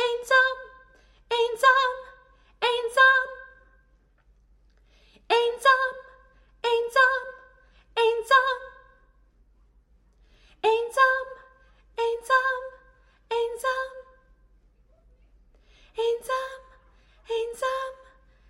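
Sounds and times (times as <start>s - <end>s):
background soprano voice: 0.0s - 3.8s, 5.2s - 9.1s, 10.6s - 15.1s, 15.9s - 18.3s.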